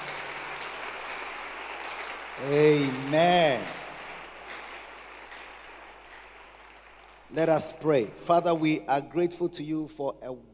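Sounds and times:
audience clapping hands: 0.0 - 8.5
speech: 2.4 - 3.8, 7.3 - 10.5.

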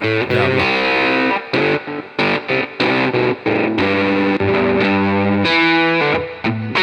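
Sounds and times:
electric guitar through amplifier at high volume: 0.0 - 6.7.

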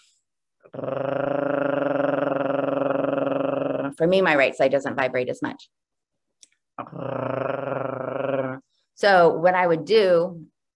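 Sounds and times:
speech: 0.6 - 1.3, 4.0 - 5.8, 7.0 - 7.4, 9.0 - 10.5
person gargling: 0.6 - 4.0, 6.8 - 8.8.

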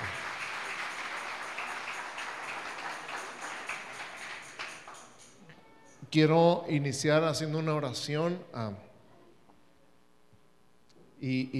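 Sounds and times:
audience applause: 0.0 - 5.2
speech: 6.1 - 8.9, 11.2 - 11.5.

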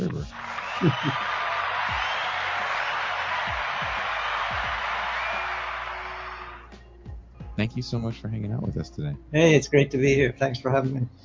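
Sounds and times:
laughter: 0.0 - 5.9
applause sound effect: 0.0 - 6.8
speech: 0.8 - 2.0, 7.6 - 11.2.

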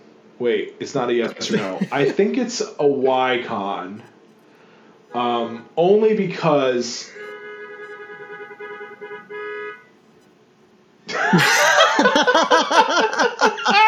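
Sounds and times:
speech: 0.4 - 4.1, 5.1 - 7.2, 11.3 - 11.6
laughter: 1.2 - 3.7, 11.1 - 13.8
steady droning tone: 2.9 - 10.7.

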